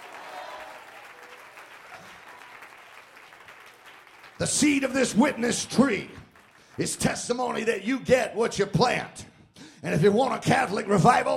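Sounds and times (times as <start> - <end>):
audience clapping: 0.0 - 7.7
speech: 4.4 - 6.2, 6.8 - 11.3.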